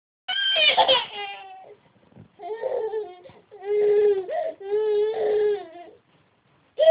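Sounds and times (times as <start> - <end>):
hungry baby girl crying: 0.3 - 1.8, 2.4 - 6.0.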